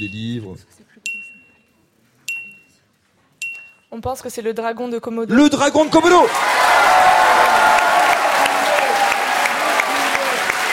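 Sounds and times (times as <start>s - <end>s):
speech: 0.0s - 1.0s, 3.9s - 7.3s
audience applause: 5.8s - 10.7s.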